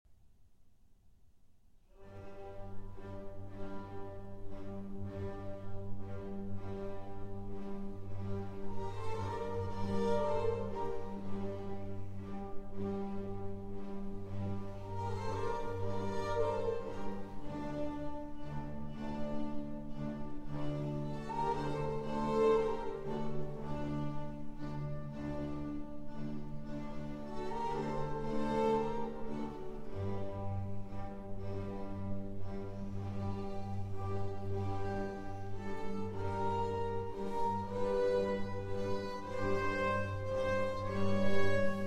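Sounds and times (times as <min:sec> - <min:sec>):
cello arrangement: 0:01.9 - 0:41.8.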